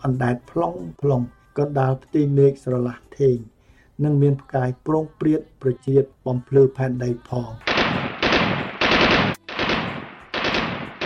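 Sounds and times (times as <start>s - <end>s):
speech: 0.0s - 8.0s
heavy gunfire from small and large guns at midnight behind a house: 7.7s - 11.0s.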